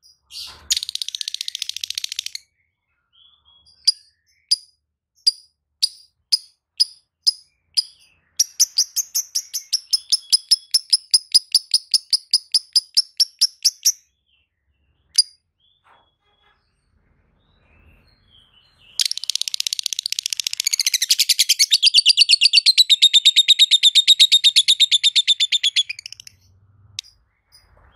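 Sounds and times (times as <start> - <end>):
lovebird song with buzzy chattering trill: 5.3 - 14.0, 19.0 - 27.1.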